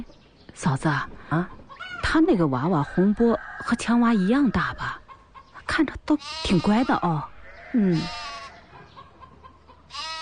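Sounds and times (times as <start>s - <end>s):
speech: 0.0s - 5.0s, 5.8s - 8.2s
lamb bleating: 6.2s - 8.6s, 9.9s - 10.2s.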